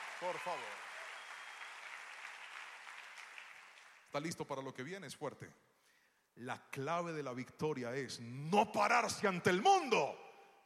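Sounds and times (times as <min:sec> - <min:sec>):
audience applauding: 0:00.0 - 0:04.1
speech: 0:00.2 - 0:00.9, 0:04.1 - 0:05.6, 0:06.4 - 0:10.6.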